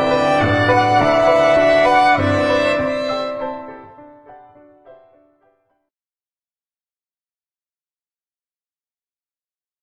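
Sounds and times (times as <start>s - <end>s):
violin: 0.0s - 4.2s
clarinet: 0.0s - 4.3s
piano: 0.0s - 5.9s.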